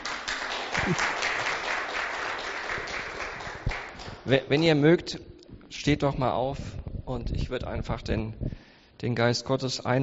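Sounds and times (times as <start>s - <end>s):
audience applause: 0.0s - 4.2s
speech: 0.8s - 1.2s, 4.3s - 10.0s.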